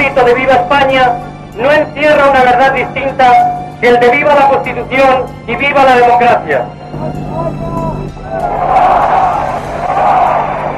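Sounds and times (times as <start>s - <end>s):
speech: 0.2s - 7.7s
crowd applause: 8.2s - 10.7s.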